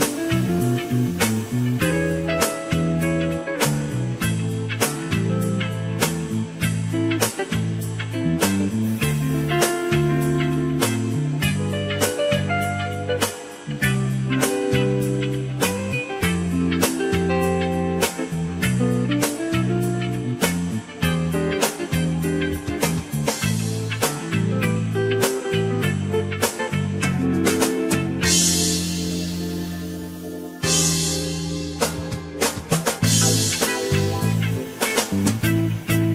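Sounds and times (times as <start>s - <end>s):
smooth jazz: 0.0s - 36.1s.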